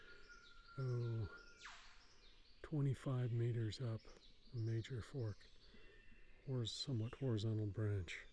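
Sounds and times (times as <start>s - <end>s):
female-plumaged riflebird calling from the fork of a tree: 0.0s - 2.0s
speech: 0.8s - 1.4s, 2.7s - 5.8s, 6.4s - 8.3s.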